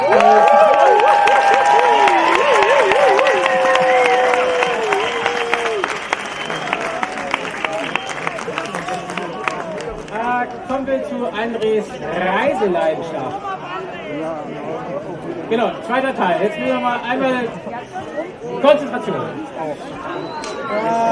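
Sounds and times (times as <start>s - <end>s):
big applause: 0.0s - 10.6s
speech: 11.7s - 13.5s, 15.5s - 17.7s, 18.5s - 21.0s.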